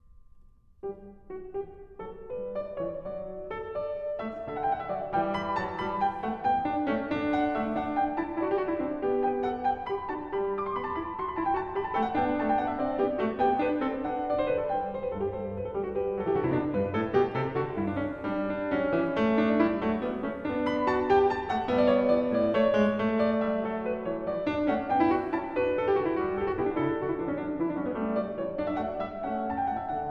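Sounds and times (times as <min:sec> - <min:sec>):
baroque keyboard canon: 0:00.8 - 0:30.0.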